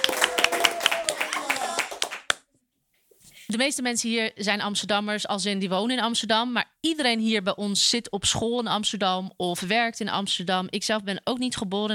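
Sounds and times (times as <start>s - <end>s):
audience applause: 0.0s - 2.4s
speech: 3.5s - 11.9s.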